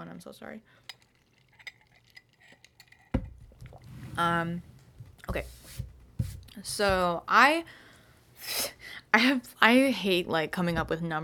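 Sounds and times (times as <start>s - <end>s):
speech: 0.0s - 1.0s, 4.2s - 4.7s, 5.3s - 5.9s, 6.6s - 7.8s, 8.4s - 11.2s
person sipping coffee: 0.9s - 4.4s.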